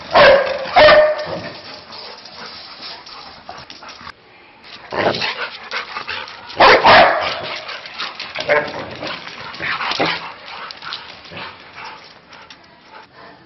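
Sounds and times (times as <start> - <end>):
dog barking at a cat: 0.1 - 1.6, 6.6 - 7.6.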